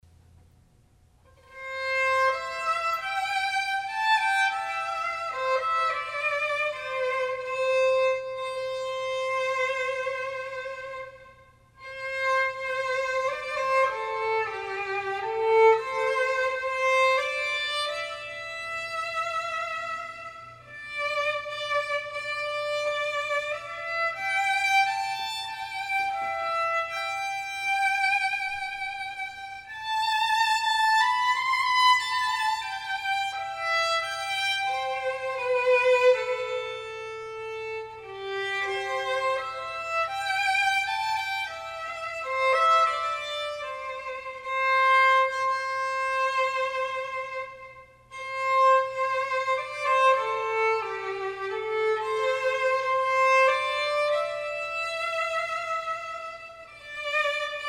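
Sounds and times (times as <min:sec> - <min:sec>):
violin: 0:01.2 - 0:57.6.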